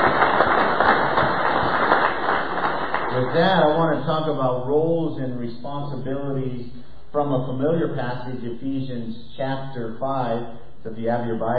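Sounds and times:
church congregation applauding: 0.0 - 4.0
speech: 3.3 - 11.5.

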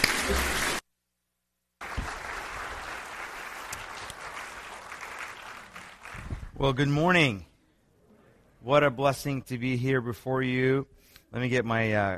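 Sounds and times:
audience applause: 0.0 - 0.8, 1.8 - 6.5
speech: 0.3 - 0.6, 6.6 - 7.5, 8.6 - 12.1.

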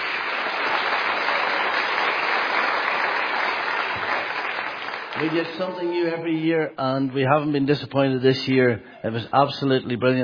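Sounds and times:
audience applauding: 0.0 - 6.2
speech: 5.2 - 10.2.

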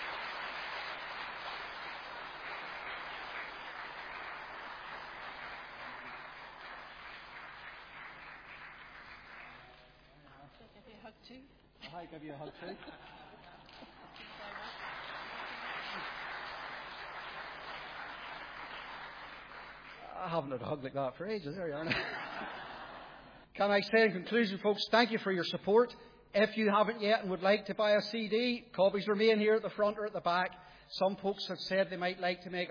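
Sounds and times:
audience applause: 0.0 - 10.0, 13.6 - 20.3
speech: 11.0 - 13.2, 20.2 - 22.6, 23.6 - 32.7
voices and chuckles: 12.2 - 14.1.

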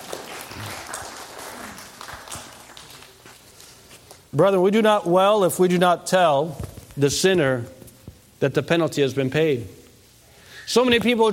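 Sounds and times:
audience applause: 0.0 - 3.3
speech: 4.3 - 7.8, 8.4 - 9.8, 10.7 - 11.3.

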